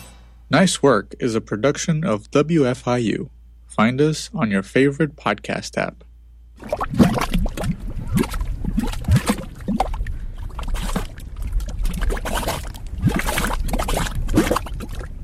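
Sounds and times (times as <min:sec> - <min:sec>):
speech: 0:00.5 - 0:07.1
bubbling mud pots spitting gray mud: 0:06.5 - 0:15.2.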